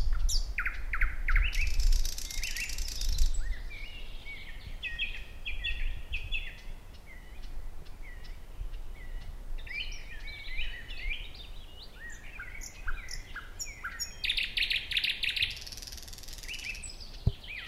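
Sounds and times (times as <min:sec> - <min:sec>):
thrush nightingale song: 0:00.0 - 0:17.6.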